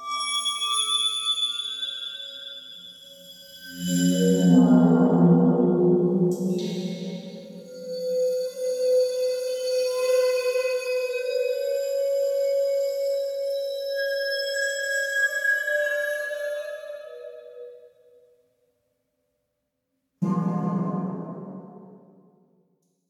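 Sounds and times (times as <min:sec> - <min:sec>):
waterphone: 0:00.0 - 0:18.0.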